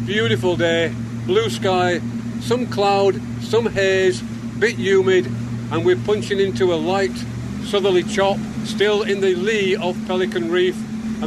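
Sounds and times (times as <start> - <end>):
engines of the sports fishing boat Teldrin: 0.0 - 11.2
speech: 0.0 - 11.2.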